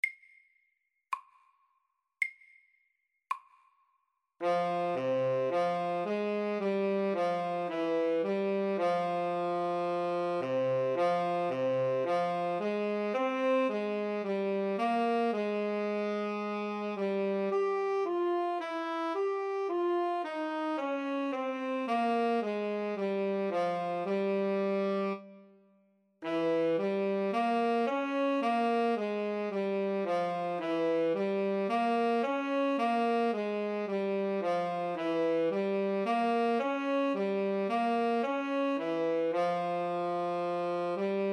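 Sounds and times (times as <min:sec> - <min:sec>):
slow etude in G minor: 0:04.4 - 0:25.6, 0:26.2 - 0:41.3.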